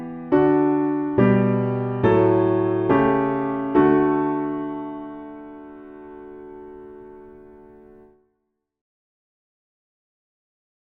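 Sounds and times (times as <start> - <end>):
piano backing for hymns: 0.0 - 8.1.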